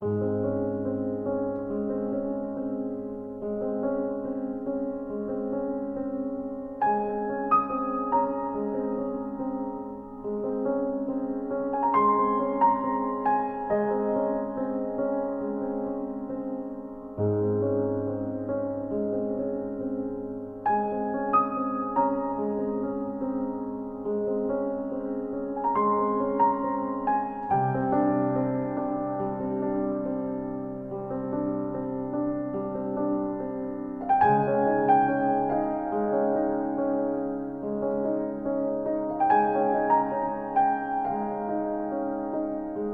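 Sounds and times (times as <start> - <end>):
piano movement: 0.0 - 42.9.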